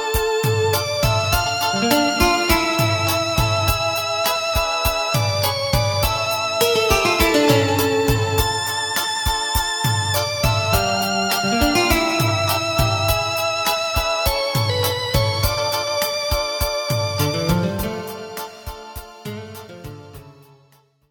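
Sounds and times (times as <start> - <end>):
bass: 0.2 - 4.6, 5.2 - 6.6, 7.4 - 9.1, 9.8 - 18.2.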